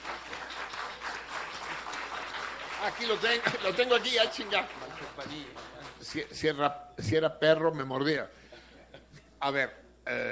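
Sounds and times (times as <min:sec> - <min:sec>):
applause at an anniversary celebration: 0:00.0 - 0:06.4
speech: 0:02.8 - 0:08.4, 0:09.4 - 0:10.2
laughter: 0:03.0 - 0:05.3.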